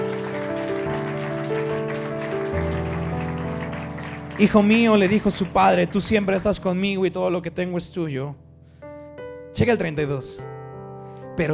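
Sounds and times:
audience applauding loudly: 0.0s - 6.8s
speech: 4.4s - 8.4s, 9.6s - 10.5s, 11.4s - 11.5s.

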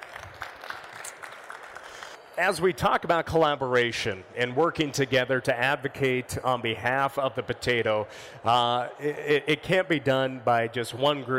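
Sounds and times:
audience applause: 0.0s - 2.3s
speech: 2.4s - 11.3s.

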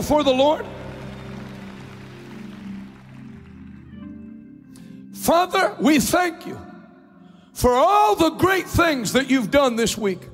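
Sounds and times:
speech: 0.0s - 0.8s, 5.3s - 6.7s, 7.6s - 10.3s
audience clapping hands: 0.0s - 4.4s.

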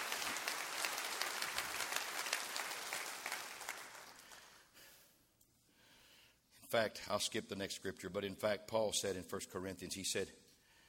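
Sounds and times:
audience clapping hands: 0.0s - 4.6s
speech: 6.7s - 10.4s.

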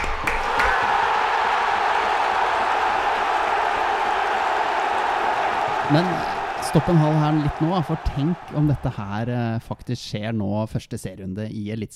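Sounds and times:
people clapping in the studio: 0.0s - 9.4s
speech: 5.9s - 11.9s.

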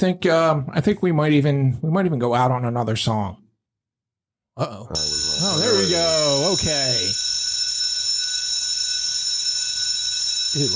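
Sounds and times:
speech: 0.0s - 3.4s, 4.6s - 7.2s, 10.5s - 10.7s
signal or alarm bell ringing: 5.0s - 10.7s.

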